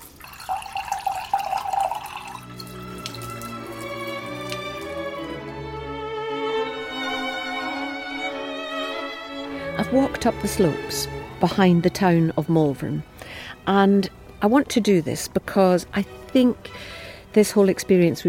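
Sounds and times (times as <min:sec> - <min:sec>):
spring water pouring into a glass: 0:00.0 - 0:05.4
speech: 0:09.9 - 0:18.2.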